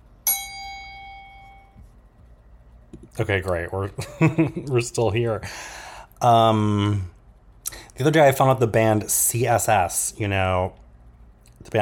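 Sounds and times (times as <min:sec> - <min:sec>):
bell ding: 0:00.2 - 0:01.8
speech: 0:03.2 - 0:07.1, 0:08.0 - 0:10.8, 0:11.6 - 0:11.8.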